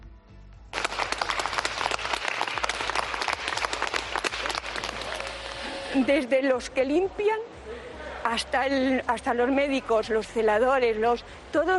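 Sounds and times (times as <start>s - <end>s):
hospital staff applauding: 0.7s - 5.9s
speech: 6.0s - 7.5s, 8.2s - 11.7s.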